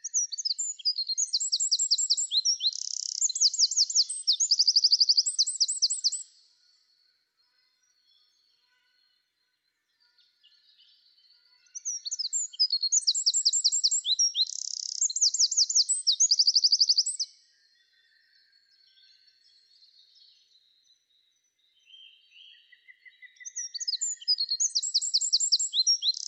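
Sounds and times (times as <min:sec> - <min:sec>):
Eurasian wren song: 0:00.0 - 0:06.4, 0:11.6 - 0:17.4, 0:22.1 - 0:26.2.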